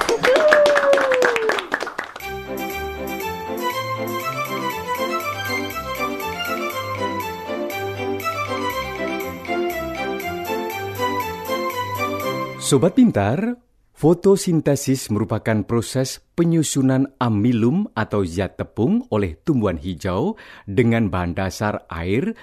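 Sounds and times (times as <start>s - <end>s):
high gliding cheer-like voice: 0.0s - 1.8s
rapid hand clapping: 0.0s - 2.3s
bouncy music track with steady bass notes: 2.2s - 12.8s
speech: 12.7s - 22.4s.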